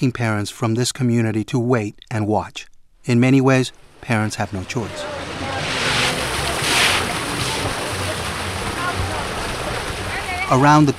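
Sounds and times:
speech: 0:00.0 - 0:05.3, 0:10.5 - 0:10.9
water gushing from an opened fire hydrant: 0:03.8 - 0:10.9.

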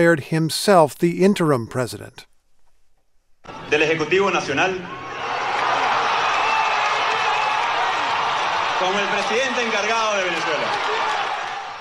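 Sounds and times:
speech: 0:00.0 - 0:02.3, 0:03.4 - 0:05.0, 0:08.8 - 0:11.0
massive crowd cheering at rally: 0:03.5 - 0:11.7.

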